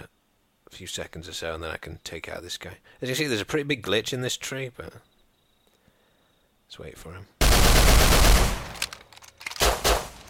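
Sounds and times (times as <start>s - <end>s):
speech: 0.8s - 5.1s, 6.7s - 8.3s
gunfire from guns in a video game: 7.4s - 8.9s, 9.6s - 10.2s.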